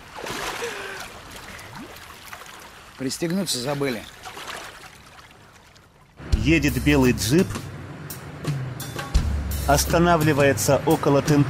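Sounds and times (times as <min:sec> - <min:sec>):
water splashing as a person falls off a raft: 0:00.0 - 0:06.2
speech: 0:03.0 - 0:04.2, 0:06.4 - 0:07.6, 0:09.7 - 0:11.4.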